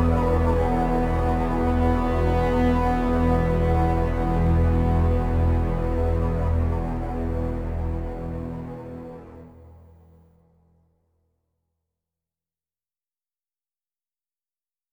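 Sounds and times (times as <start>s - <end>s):
drone: 0.0s - 10.2s.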